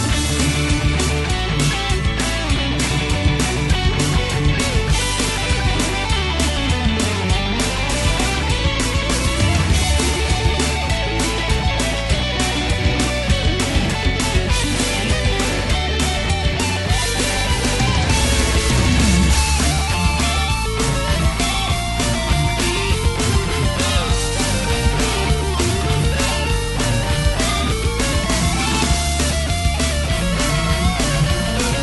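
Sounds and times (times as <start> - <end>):
rock cover song: 0.0 - 31.8.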